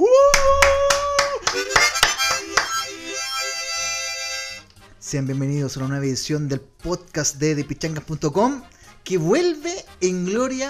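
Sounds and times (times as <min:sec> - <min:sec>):
audience clapping hands: 0:00.0 - 0:03.2
speech: 0:05.1 - 0:10.6.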